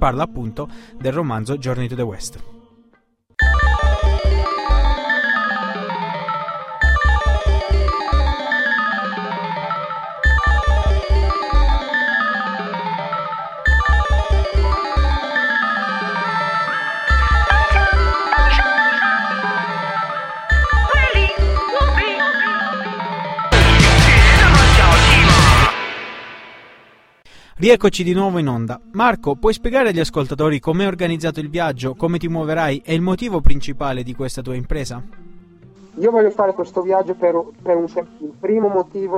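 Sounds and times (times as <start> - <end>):
speech: 0.0 - 2.6, 27.6 - 35.3, 36.0 - 39.1
song from a musical soundtrack album: 3.4 - 27.2.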